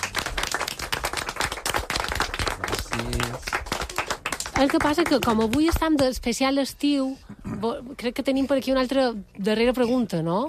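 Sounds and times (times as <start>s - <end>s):
group applauding: 0.0s - 6.2s
speech: 4.6s - 10.4s.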